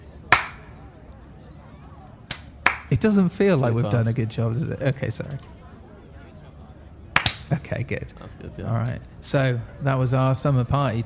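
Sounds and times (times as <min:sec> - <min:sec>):
hand clapping: 0:00.3 - 0:00.7, 0:02.3 - 0:02.9, 0:07.2 - 0:07.5
speech: 0:02.9 - 0:05.6, 0:07.7 - 0:11.0.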